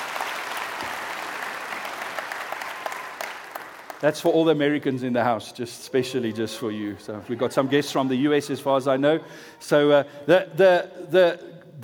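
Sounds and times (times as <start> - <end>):
audience applause: 0.0 - 4.1
speech: 4.0 - 11.5.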